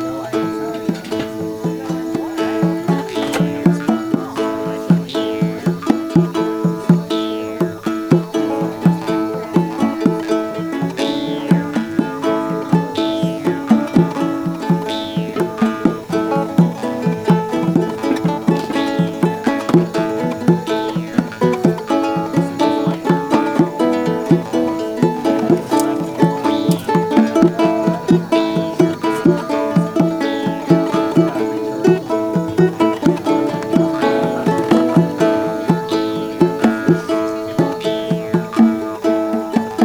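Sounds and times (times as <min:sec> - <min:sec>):
harp instrumental: 0:00.0 - 0:39.8
laughter: 0:00.0 - 0:39.8.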